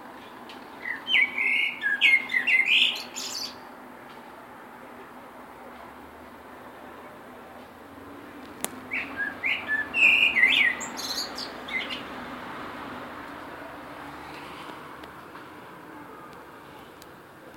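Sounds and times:
blackbird singing on tree: 0.8s - 3.6s, 8.7s - 12.2s.

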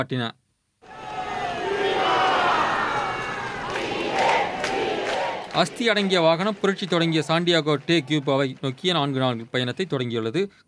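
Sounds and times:
speech: 0.0s - 1.0s, 5.6s - 10.6s
large crowd chanting Fidel Castro's name: 0.9s - 5.8s.

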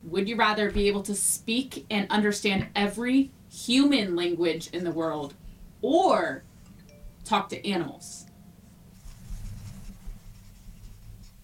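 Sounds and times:
speech: 0.1s - 6.5s, 7.3s - 8.3s
pen writing on paper: 9.0s - 11.4s.

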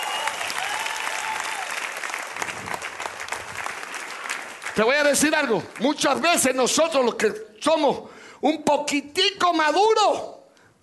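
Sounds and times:
audience applauding loudly: 0.0s - 6.6s
speech: 4.8s - 10.8s.

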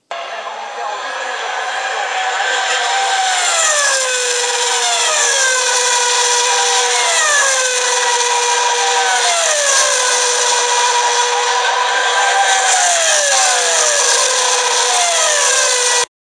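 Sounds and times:
F1 racing car at Spa Eau Rouge: 0.1s - 16.1s.

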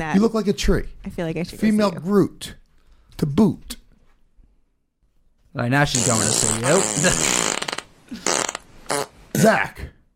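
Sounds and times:
speech: 0.0s - 2.6s, 3.2s - 3.8s, 5.5s - 7.4s, 9.4s - 10.0s
fart sound effect: 5.9s - 9.2s.

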